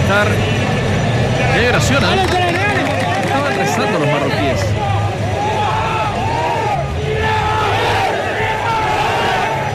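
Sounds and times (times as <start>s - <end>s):
speech: 0.1s - 0.7s, 1.6s - 2.6s, 3.3s - 5.0s
football team's rallying war cry: 4.7s - 9.7s.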